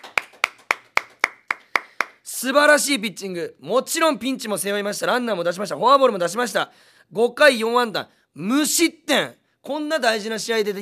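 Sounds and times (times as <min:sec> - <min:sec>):
applause, hands clapping: 0:00.0 - 0:02.3
speech: 0:02.4 - 0:10.8.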